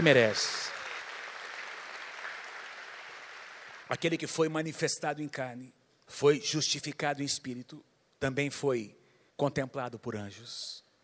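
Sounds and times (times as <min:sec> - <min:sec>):
speech: 0:00.0 - 0:00.6, 0:03.9 - 0:10.8
audience applause: 0:00.0 - 0:03.9.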